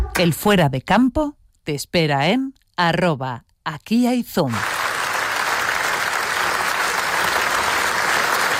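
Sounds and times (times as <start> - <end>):
speech: 0.2 - 4.7
ovation applause at a film festival: 4.5 - 8.5.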